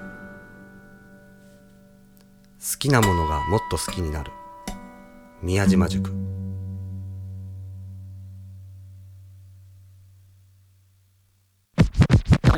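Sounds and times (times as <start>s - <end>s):
speech: 2.6s - 4.4s, 5.4s - 6.2s
vinyl record scratching back and forth: 11.8s - 12.5s.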